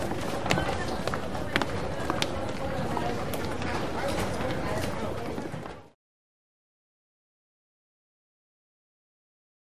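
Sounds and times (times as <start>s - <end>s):
large crowd on exterior stairs: 0.0s - 6.0s.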